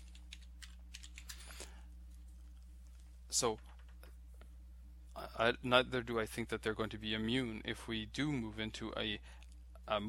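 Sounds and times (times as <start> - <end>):
soft typing on a computer keyboard: 0.0 - 1.6
speech: 3.3 - 3.7, 5.4 - 10.0.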